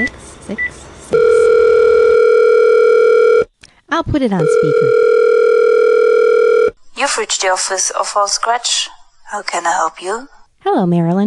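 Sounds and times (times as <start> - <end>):
speech: 0.0 - 1.4, 4.0 - 5.1, 7.0 - 11.2
telephone dial tone: 1.2 - 3.5, 4.4 - 6.8.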